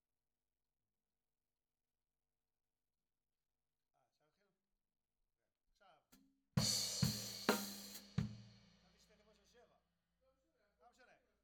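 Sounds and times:
tom drum: 6.6 - 9.0.

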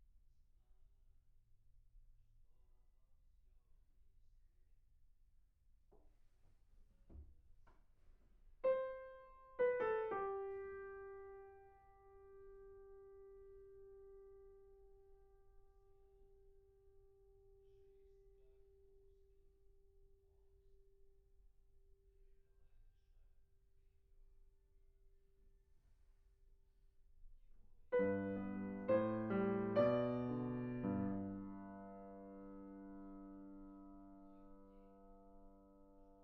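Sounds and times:
piano: 8.6 - 19.1, 27.8 - 36.2.

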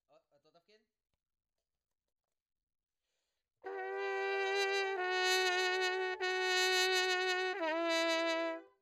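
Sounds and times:
trumpet: 3.6 - 8.8.

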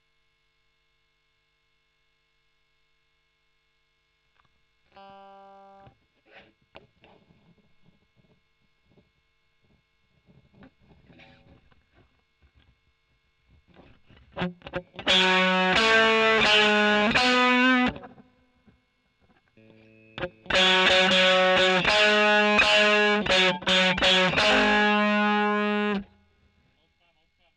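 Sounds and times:
overdriven electric guitar: 9.6 - 12.8, 13.6 - 26.2.

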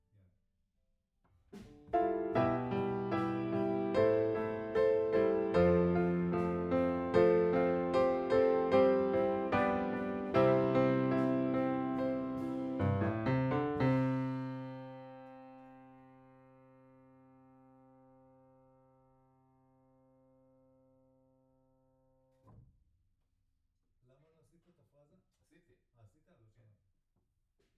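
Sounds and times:
piano note B: 2.0 - 17.0.

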